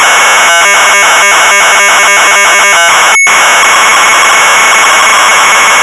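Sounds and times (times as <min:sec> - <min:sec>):
MZ800 computer tape data signal: 0:00.2 - 0:05.8.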